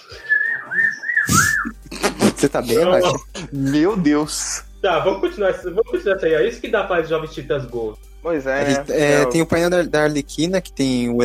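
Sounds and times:
parakeet whistling: 0.1 - 1.8
speech: 2.4 - 11.2.

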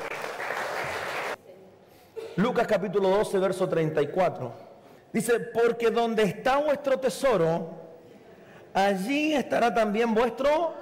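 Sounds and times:
audience applause: 0.0 - 1.4
speech: 2.4 - 7.9, 8.7 - 10.7.

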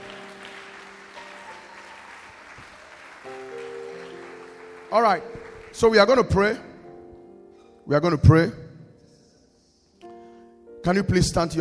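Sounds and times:
audience clapping hands: 0.0 - 6.6
speech: 4.9 - 6.7, 7.9 - 8.6, 10.8 - 11.6.

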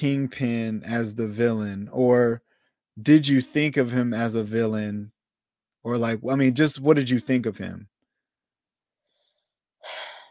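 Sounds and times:
speech: 0.0 - 5.1, 5.8 - 7.9
deep breath: 2.4 - 2.8, 9.0 - 10.3.

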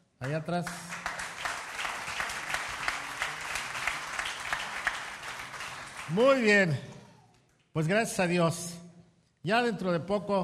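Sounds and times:
audience clapping: 0.0 - 7.7
speech: 0.2 - 0.9, 6.1 - 6.9, 7.7 - 8.8, 9.4 - 10.4.

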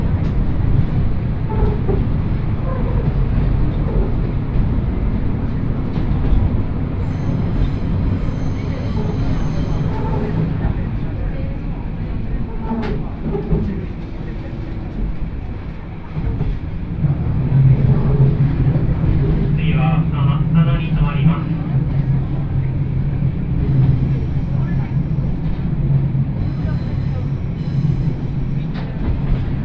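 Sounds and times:
Kiha 54 train rumbling on the Yodo Line from Uwajima toward Chikanaga: 0.0 - 29.6
voices on a crowded train: 7.0 - 16.4, 19.4 - 29.6.

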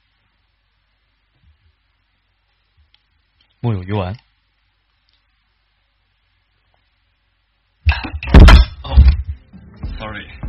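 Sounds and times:
speech: 3.6 - 4.3
microphone falling over: 7.8 - 10.4.

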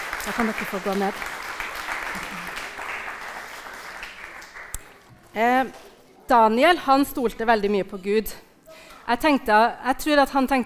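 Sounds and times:
crowd applauding: 0.0 - 5.0
speech: 0.2 - 1.4, 5.3 - 8.5, 9.1 - 10.6.

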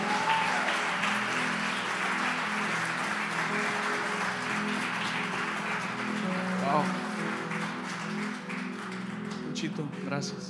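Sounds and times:
crowd voices: 0.0 - 8.4
audience applause: 0.0 - 10.4.

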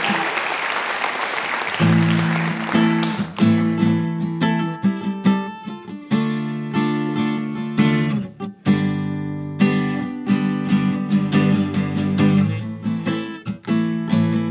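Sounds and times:
audience applause for a performer at a live music show: 0.0 - 3.6
instrumental music with ringing sustained notes and plucked accents: 1.8 - 14.4.

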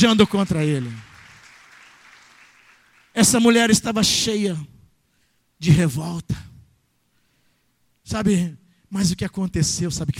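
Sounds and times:
speech: 0.0 - 1.1, 3.2 - 4.7, 5.6 - 6.5, 8.1 - 10.1
audience applauding: 0.0 - 3.2.

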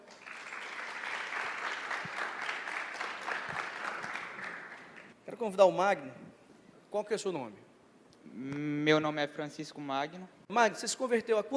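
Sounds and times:
audience applause: 0.0 - 5.1
speech: 5.3 - 6.3, 6.9 - 11.5.

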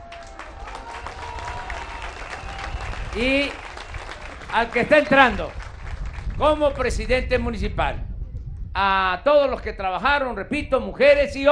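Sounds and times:
faint voices and cheers: 0.0 - 5.6
audience applause: 0.0 - 6.7
speech: 3.1 - 3.6, 4.5 - 5.6, 6.4 - 8.0, 8.8 - 11.5.

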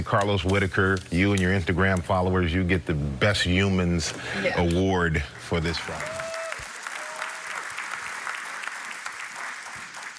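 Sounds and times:
speech: 0.0 - 6.2
clapping applause: 5.5 - 10.1.

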